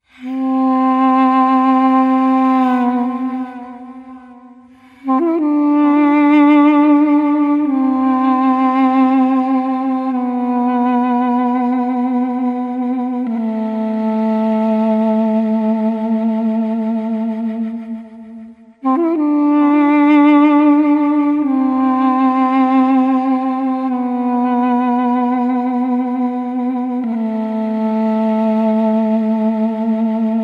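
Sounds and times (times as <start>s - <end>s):
sad flute loop: 0.0s - 30.4s.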